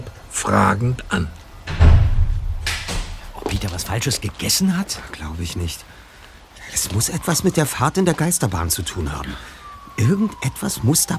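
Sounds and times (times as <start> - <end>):
speech: 0.4 - 1.4, 3.8 - 6.1, 6.7 - 11.1
front door closing shut: 0.6 - 4.4.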